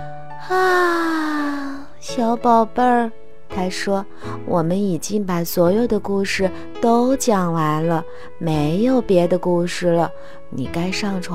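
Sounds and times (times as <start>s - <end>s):
narrator voicing a big yawn for the mother rabbit in a bedtime story: 0.4s - 2.0s
speech: 0.5s - 0.9s, 2.1s - 11.3s.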